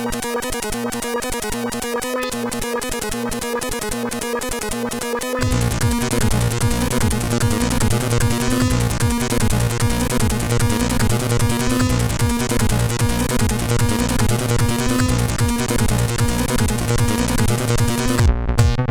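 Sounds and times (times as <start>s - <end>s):
SID CSG8580 chip synth loop: 0.0s - 18.8s.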